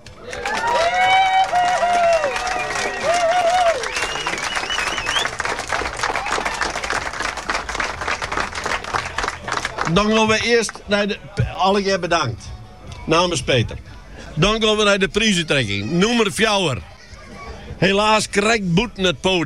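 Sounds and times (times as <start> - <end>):
crowd applause: 0.0 - 10.4
cheers and whoops: 0.1 - 5.4, 6.0 - 7.0
speech: 9.9 - 12.5, 13.1 - 16.9, 17.8 - 19.4.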